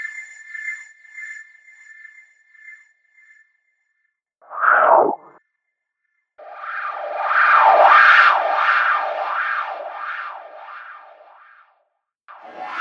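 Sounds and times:
filter whooshes: 0:04.5 - 0:05.4, 0:06.5 - 0:11.3.

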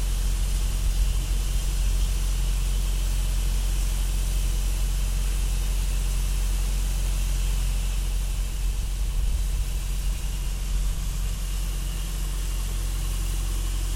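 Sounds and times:
industrial machine hum: 0:00.1 - 0:03.2, 0:04.0 - 0:13.9.

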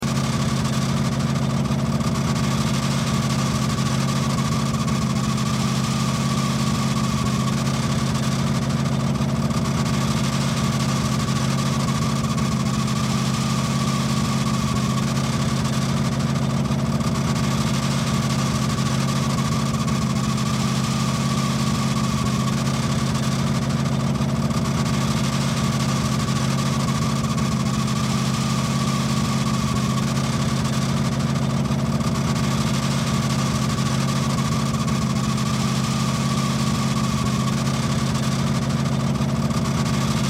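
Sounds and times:
squeaky car belt running: 0:00.0 - 0:40.2.

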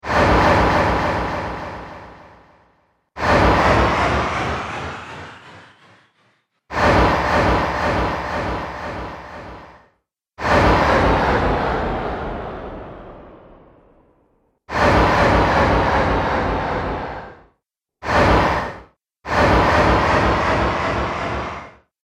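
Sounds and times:
sturdy sweep whooshes: 0:00.0 - 0:21.8.

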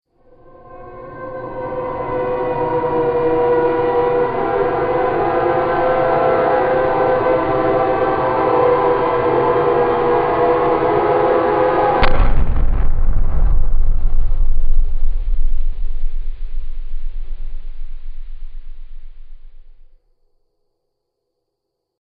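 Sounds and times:
howling: 0:00.4 - 0:19.8
movie impact: 0:12.0 - 0:19.9.

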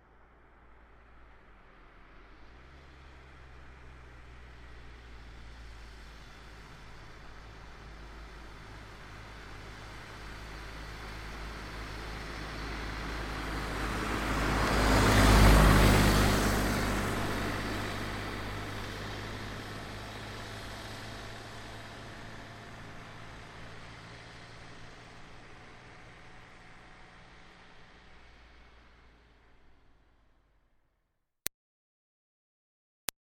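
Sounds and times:
Smart car passing by slowly: 0:00.0 - 0:30.5.

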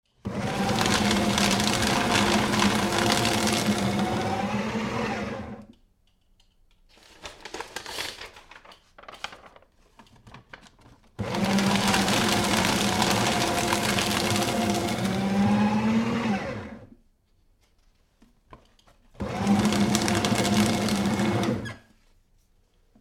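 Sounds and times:
electric paper shredder shredding various types of paper: 0:00.1 - 0:05.7, 0:11.2 - 0:17.0, 0:19.2 - 0:21.9.

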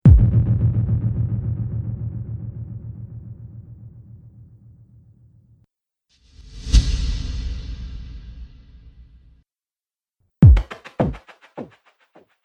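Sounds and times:
cinematic drum hits: 0:00.1 - 0:03.8, 0:10.4 - 0:11.2.

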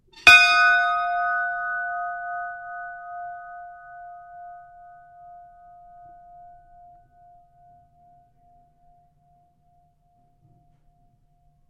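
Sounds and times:
ship's bell ringing: 0:00.2 - 0:08.0.

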